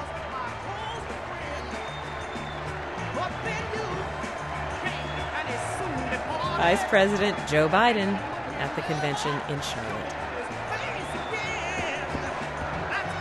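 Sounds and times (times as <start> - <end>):
large crowd applauding and cheering in welcome: 0.0 - 13.1
whistles: 0.8 - 3.2, 4.9 - 5.6, 10.9 - 12.0
speech: 3.3 - 4.0, 6.2 - 10.2
murmured voices: 5.0 - 10.8.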